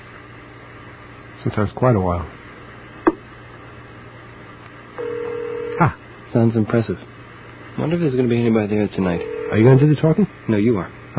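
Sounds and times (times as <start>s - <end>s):
speech: 1.4s - 2.4s, 5.8s - 7.1s, 7.8s - 11.1s
telephone ringing tone on the line: 5.0s - 5.8s, 9.2s - 9.8s
telephone line hiss: 5.0s - 6.0s, 9.1s - 10.1s.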